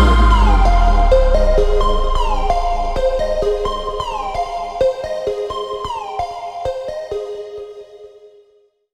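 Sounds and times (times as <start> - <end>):
phonk funk music: 0.0 - 6.3.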